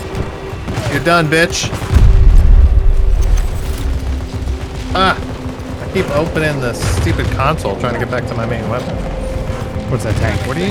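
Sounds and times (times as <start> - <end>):
grenade explosion in a video game: 0.2 - 7.7
speech: 1.0 - 1.9, 4.9 - 5.3, 6.0 - 9.2, 9.9 - 10.6.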